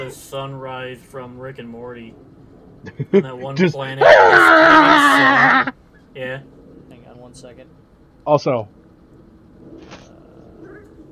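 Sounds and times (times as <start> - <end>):
low hum: 0.0 - 11.1
speech: 0.1 - 6.6, 7.3 - 8.8
cat meowing: 4.0 - 5.7.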